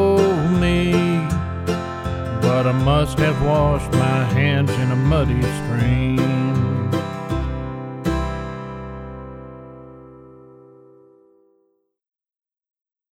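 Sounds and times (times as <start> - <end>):
person singing in the key of C: 0.0 - 7.6
backing track in the key of C: 0.0 - 11.3.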